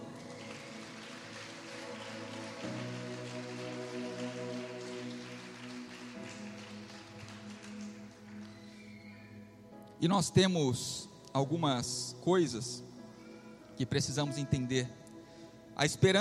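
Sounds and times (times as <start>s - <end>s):
audience applauding: 0.0s - 9.3s
speech: 10.0s - 12.8s, 13.8s - 15.0s, 15.8s - 16.1s.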